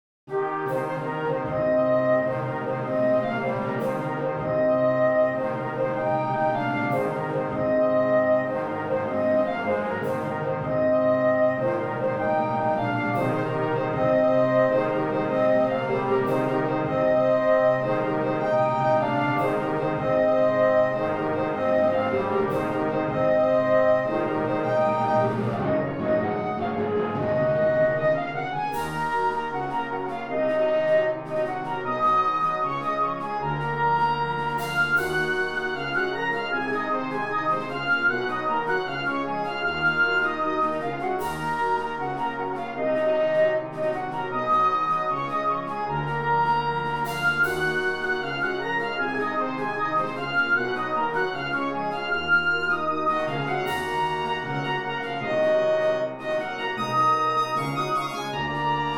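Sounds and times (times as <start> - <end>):
wind orchestra: 0.3 - 58.9.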